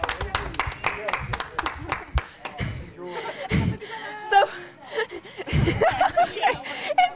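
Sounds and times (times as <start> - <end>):
applause: 0.0 - 2.6
laughter: 1.6 - 7.0.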